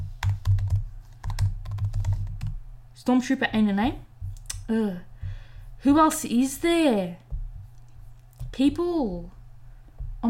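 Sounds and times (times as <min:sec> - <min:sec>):
typing a name on a computer keyboard: 0:00.2 - 0:02.6
low hum: 0:02.2 - 0:10.2
speech: 0:03.0 - 0:04.1, 0:04.7 - 0:05.1, 0:05.8 - 0:07.2, 0:08.6 - 0:09.4.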